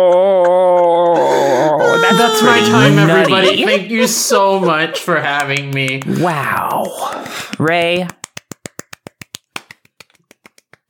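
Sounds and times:
speech: 0:00.0 - 0:00.2, 0:02.1 - 0:08.2
laughter: 0:00.0 - 0:07.3
audience clapping one at a time: 0:05.0 - 0:10.8.

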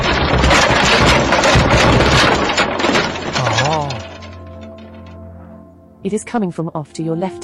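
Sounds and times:
crash of a knocked-over pyramid of tins: 0:00.0 - 0:05.2
speech: 0:06.0 - 0:07.4.

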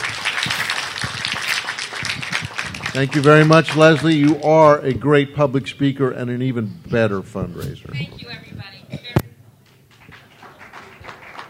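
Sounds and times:
round of applause from a crowd: 0:00.0 - 0:04.8, 0:09.7 - 0:11.4
speech: 0:02.9 - 0:08.5.

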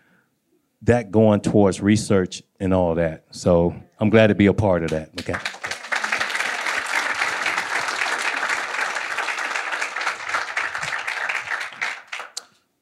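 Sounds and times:
speech: 0:00.8 - 0:05.5
audience applause: 0:05.2 - 0:12.5.

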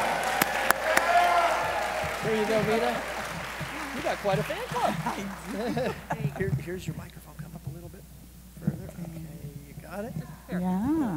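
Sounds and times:
audience applause: 0:00.0 - 0:06.8
speech: 0:02.2 - 0:03.1, 0:04.0 - 0:07.2, 0:09.9 - 0:11.1
laughter: 0:02.2 - 0:07.1.

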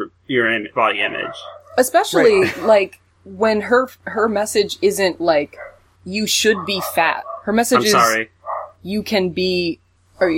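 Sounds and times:
low steady hum: 0:00.0 - 0:10.3
speech: 0:00.3 - 0:10.3
dog barking: 0:01.0 - 0:01.8, 0:06.5 - 0:08.8
laughter: 0:02.0 - 0:02.9, 0:07.7 - 0:08.2.

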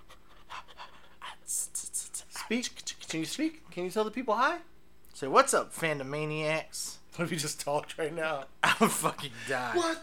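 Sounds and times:
dog panting close to microphone: 0:00.0 - 0:01.2
speech: 0:02.5 - 0:10.0.

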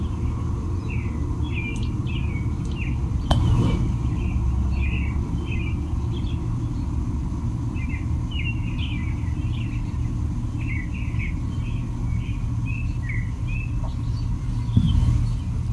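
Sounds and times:
several American robins singing whistled phrases: 0:00.0 - 0:15.7
steady low rumble of traffic: 0:00.0 - 0:15.7.

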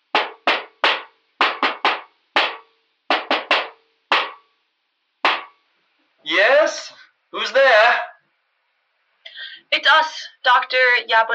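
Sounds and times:
knocking on a thick metal door: 0:00.2 - 0:04.4, 0:05.2 - 0:05.5
speech: 0:06.2 - 0:08.1, 0:09.9 - 0:11.3.

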